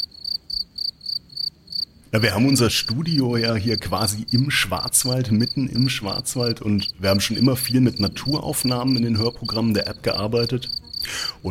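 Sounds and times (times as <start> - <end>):
insects chirping in forest: 0.0 - 11.4
birds chirping: 2.1 - 11.4
speech: 2.1 - 11.4.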